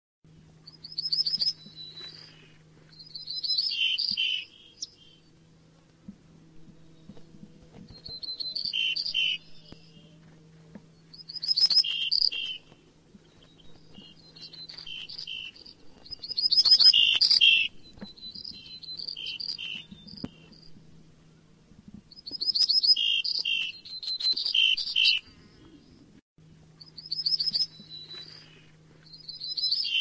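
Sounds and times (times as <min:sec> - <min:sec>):
low droning hum: 0:00.3 - 0:29.9
bird chirping: 0:00.7 - 0:05.3, 0:07.9 - 0:10.2, 0:11.0 - 0:20.8, 0:22.1 - 0:26.0, 0:26.8 - 0:29.9.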